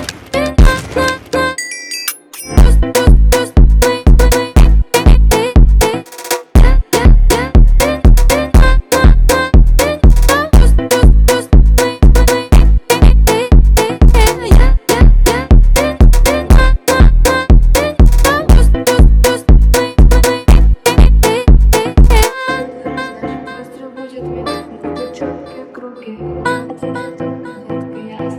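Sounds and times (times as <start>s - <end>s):
slowed phonk music: 0.0s - 1.6s, 2.6s - 23.4s.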